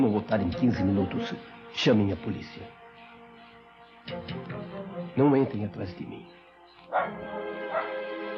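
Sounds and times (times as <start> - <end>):
speech: 0.0 - 2.8, 5.2 - 7.5
dogs barking: 6.8 - 8.2
dogs whimpering: 6.9 - 8.0.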